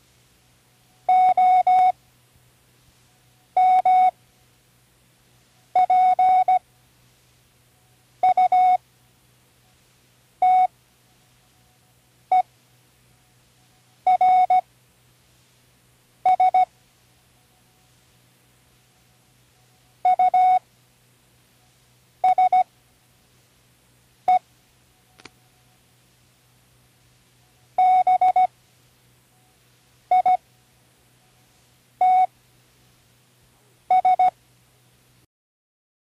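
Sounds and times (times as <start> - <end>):
Morse code spelling words: 1.1 - 2.0, 3.6 - 4.1, 5.8 - 6.6, 8.2 - 8.8, 10.4 - 10.7, 14.1 - 14.6, 16.3 - 16.7, 19.0 - 20.6, 22.2 - 22.7, 27.8 - 28.5, 30.1 - 30.4, 32.0 - 32.3, 33.9 - 34.3.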